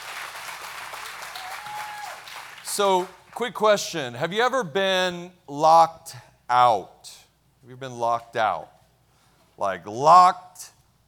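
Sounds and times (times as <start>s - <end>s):
audience applause welcoming guests: 0.0s - 3.2s
speech: 2.8s - 8.8s, 9.6s - 10.7s.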